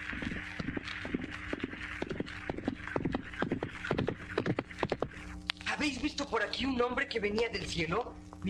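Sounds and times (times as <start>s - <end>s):
horse hooves trotting: 0.1s - 5.2s
speech: 5.8s - 8.4s.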